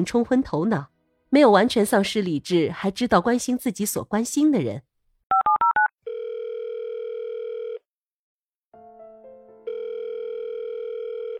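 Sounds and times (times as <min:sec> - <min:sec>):
speech: 0:00.0 - 0:04.9
telephone dialing: 0:05.3 - 0:07.8, 0:09.8 - 0:11.3.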